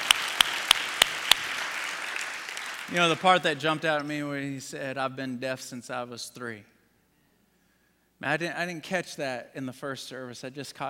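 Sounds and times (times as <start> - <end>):
audience applause: 0.0 - 3.4
speech: 2.9 - 6.7, 8.2 - 10.8.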